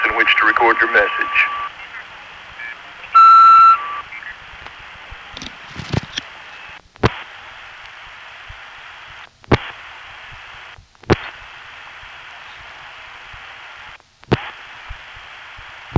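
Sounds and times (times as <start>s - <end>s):
speech: 0.3s - 1.6s
answering machine beep tone: 1.0s - 1.7s, 2.6s - 4.3s.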